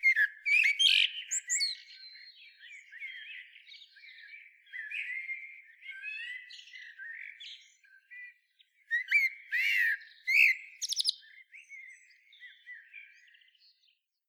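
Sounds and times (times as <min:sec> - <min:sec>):
Eurasian blackbird singing warbles and twitters: 0:00.0 - 0:14.1.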